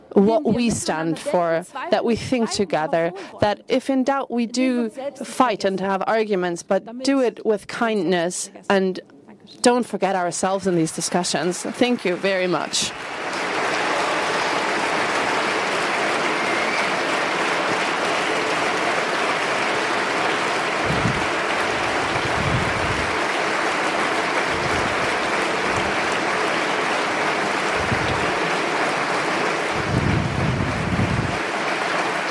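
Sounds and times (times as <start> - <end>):
speech: 0.2 - 13.2
audience applause: 10.6 - 32.3.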